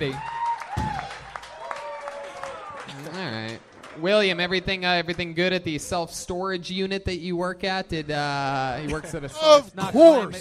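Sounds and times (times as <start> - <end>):
speech: 0.0 - 0.3, 3.0 - 10.3
audience cheering and applauding: 0.0 - 4.1.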